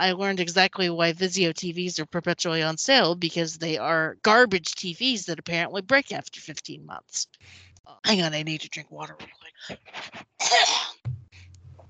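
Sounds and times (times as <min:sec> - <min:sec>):
speech: 0:00.0 - 0:11.2
cough: 0:10.4 - 0:11.0.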